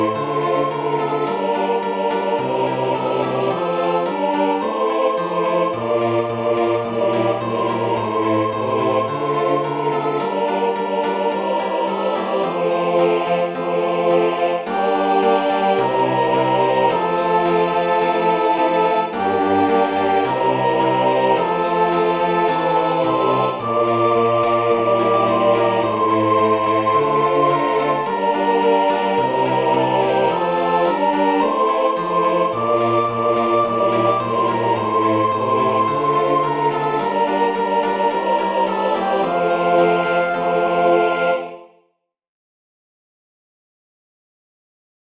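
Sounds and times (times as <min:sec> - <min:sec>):
choir singing a psalm setting: 0:00.0 - 0:41.8.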